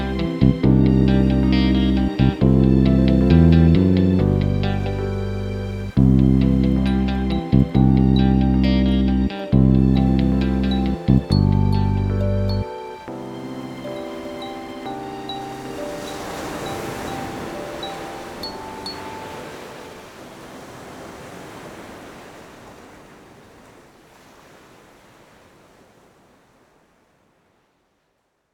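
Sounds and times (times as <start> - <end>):
sunny instrumental interlude without drums: 0.0 - 20.0.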